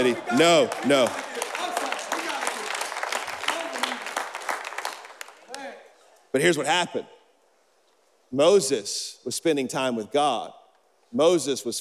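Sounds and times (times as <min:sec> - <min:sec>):
speech: 0:00.0 - 0:01.2, 0:06.3 - 0:07.2, 0:08.3 - 0:11.7
audience applause: 0:00.0 - 0:05.6.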